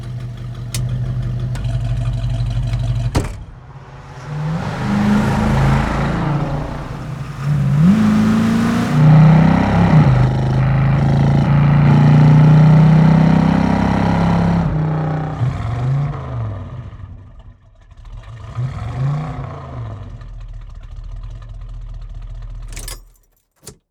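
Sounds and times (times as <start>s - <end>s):
Ford Mustang Mach 1 engine: 0.0s - 15.6s.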